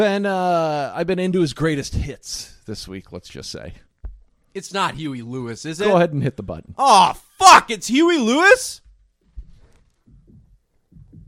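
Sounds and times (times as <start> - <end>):
speech: 0.0 - 3.9, 4.5 - 8.8
heartbeat sound at start of song: 9.4 - 11.2.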